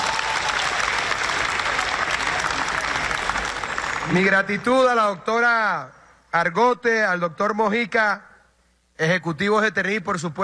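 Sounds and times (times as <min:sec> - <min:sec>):
crowd applauding: 0:00.0 - 0:04.4
speech: 0:04.1 - 0:08.3, 0:09.0 - 0:10.4.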